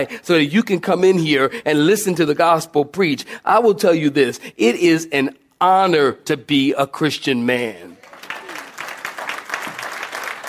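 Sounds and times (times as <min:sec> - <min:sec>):
speech: 0:00.0 - 0:08.0
audience clapping: 0:08.0 - 0:10.4.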